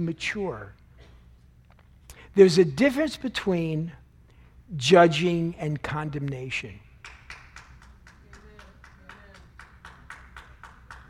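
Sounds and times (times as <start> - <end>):
speech: 0.0 - 0.8, 2.4 - 4.0, 4.7 - 7.2
single person applauding: 7.0 - 11.0.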